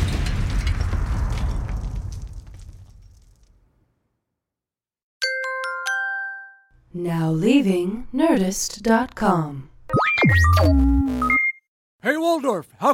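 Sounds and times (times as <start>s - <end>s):
explosion: 0.0s - 4.0s
speech: 6.9s - 11.4s, 12.0s - 12.9s.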